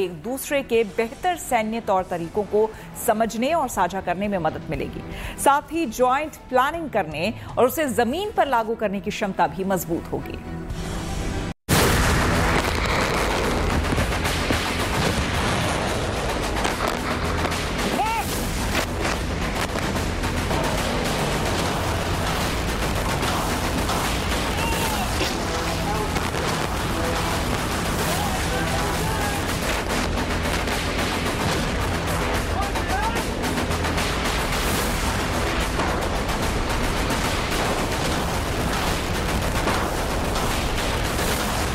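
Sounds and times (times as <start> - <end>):
speech: 0.0 - 10.8
Pinaka multi-barrel rocket launcher firing: 11.7 - 41.7.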